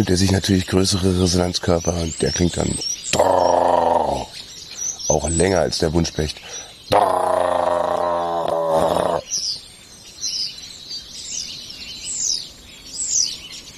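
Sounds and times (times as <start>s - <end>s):
speech: 0.0s - 3.6s, 5.2s - 6.7s
starling singing overhead: 0.0s - 9.5s.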